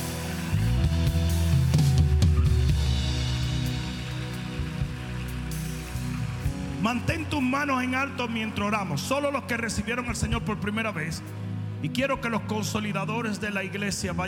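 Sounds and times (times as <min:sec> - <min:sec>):
audience applauding: 0:00.0 - 0:08.6
speech: 0:06.9 - 0:14.2.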